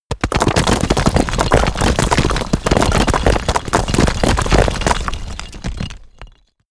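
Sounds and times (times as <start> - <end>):
stone dropping: 0.1 - 6.5.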